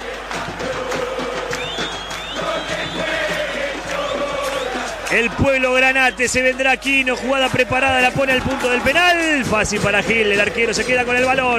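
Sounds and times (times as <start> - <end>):
stadium crowd cheering and chanting: 0.0 - 11.5
speech: 5.1 - 11.5.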